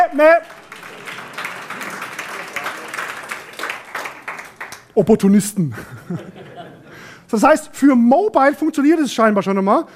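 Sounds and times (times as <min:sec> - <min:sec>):
audience clapping: 0:00.0 - 0:05.1
speech: 0:00.1 - 0:00.6, 0:05.0 - 0:06.5, 0:07.3 - 0:09.9
laughter: 0:05.6 - 0:07.0.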